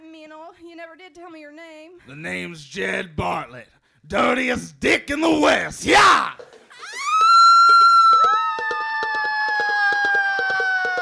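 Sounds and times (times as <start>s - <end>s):
speech: 0.8s - 6.5s
woman screaming: 6.8s - 10.9s.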